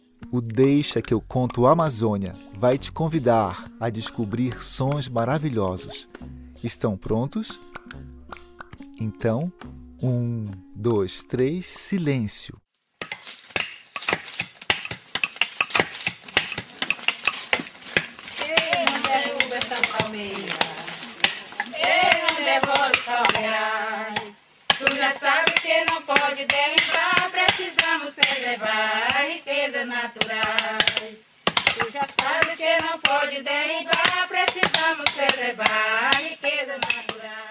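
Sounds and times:
speech: 0:00.3 - 0:08.0, 0:09.0 - 0:12.6
women cracking babaçu coconuts: 0:07.6 - 0:09.0, 0:13.0 - 0:23.5, 0:24.1 - 0:28.4, 0:30.2 - 0:37.2
women babaçu coconut crackers singing a work song in Maranhão: 0:18.4 - 0:37.4.

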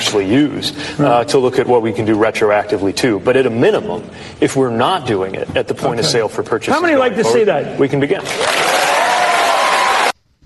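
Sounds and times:
speech: 0:00.1 - 0:08.6
lukewarm crowd applause: 0:08.2 - 0:10.2.

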